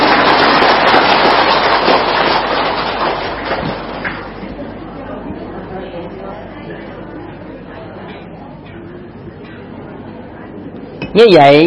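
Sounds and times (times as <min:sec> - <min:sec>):
audience applause: 0:00.0 - 0:04.4.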